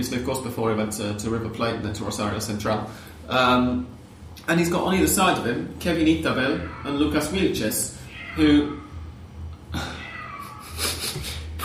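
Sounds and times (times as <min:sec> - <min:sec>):
speech: 0:00.0 - 0:08.8
cat meowing: 0:06.4 - 0:07.3, 0:08.0 - 0:09.1, 0:09.8 - 0:11.0.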